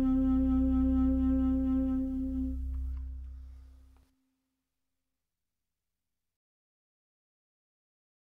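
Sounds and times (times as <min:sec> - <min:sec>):
saxophone: 0:00.0 - 0:03.1.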